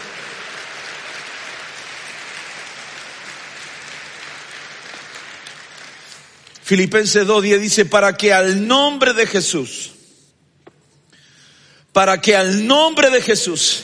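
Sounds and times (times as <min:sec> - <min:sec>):
audience clapping hands: 0:00.0 - 0:07.1
speech: 0:06.7 - 0:09.9, 0:12.0 - 0:13.8.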